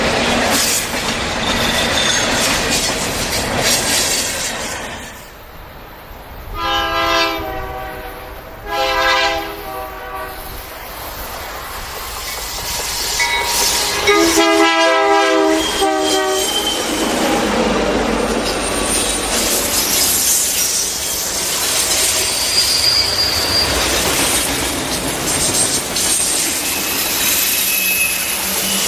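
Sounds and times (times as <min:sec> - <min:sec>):
train rumbling along the tracks: 0:00.0 - 0:28.8
train horn blasts: 0:06.5 - 0:10.6, 0:13.2 - 0:16.9.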